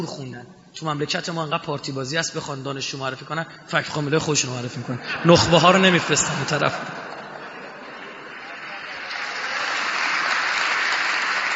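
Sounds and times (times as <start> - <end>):
speech: 0.0 - 7.1
laughter: 4.6 - 9.9
crowd clapping in a hall: 6.2 - 11.5.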